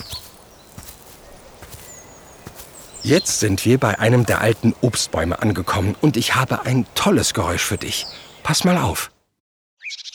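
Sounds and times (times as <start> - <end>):
footsteps walking outdoors: 0.0 - 8.6
speech: 3.0 - 9.2.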